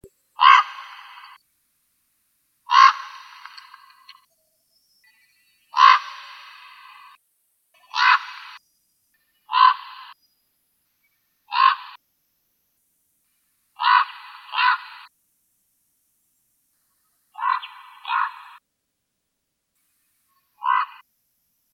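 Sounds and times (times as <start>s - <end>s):
Common raven harsh rasping calls: 0.4s - 1.4s, 2.7s - 4.3s, 5.7s - 7.2s, 7.8s - 8.6s, 9.4s - 10.2s, 11.5s - 12.0s, 13.8s - 15.1s, 17.4s - 18.6s, 20.4s - 21.0s.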